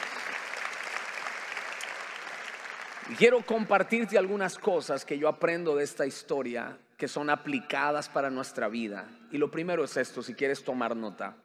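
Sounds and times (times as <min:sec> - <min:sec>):
congregation applause during a church service: 0:00.0 - 0:05.1
speech: 0:03.0 - 0:11.4.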